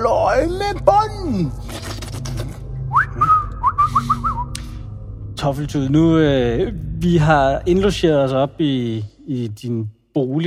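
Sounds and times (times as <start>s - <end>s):
speech: 0.4s - 1.9s, 5.4s - 10.4s
whistling: 2.9s - 4.8s.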